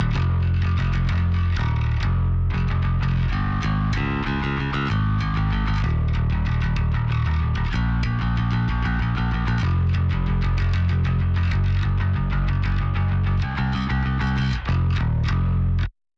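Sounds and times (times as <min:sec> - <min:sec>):
bass: 0:00.0 - 0:16.0.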